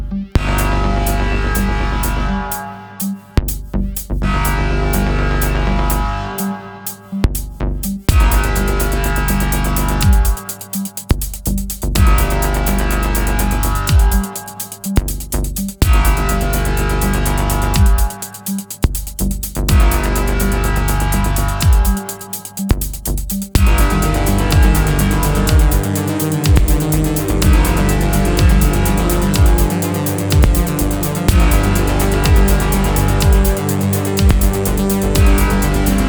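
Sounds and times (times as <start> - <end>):
fight music loop break at 124 bpm: 0.1 - 36.0.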